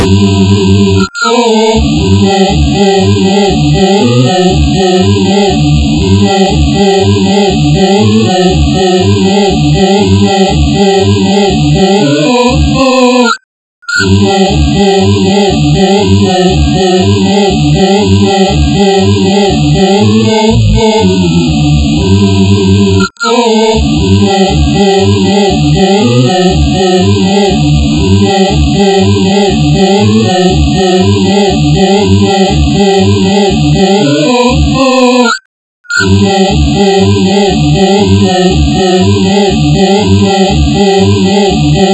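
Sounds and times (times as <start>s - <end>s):
person humming: 0.0s - 13.3s, 14.1s - 35.2s, 36.1s - 41.9s.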